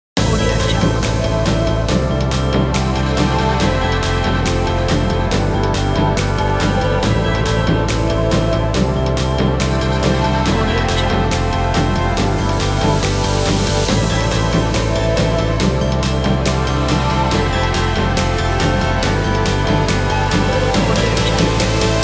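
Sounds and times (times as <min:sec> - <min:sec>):
future bass music: 0:00.2 - 0:22.0.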